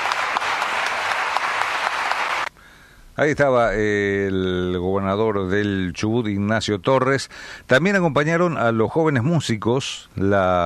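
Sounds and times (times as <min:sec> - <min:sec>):
audience applause: 0:00.0 - 0:02.5
speech: 0:03.2 - 0:10.6.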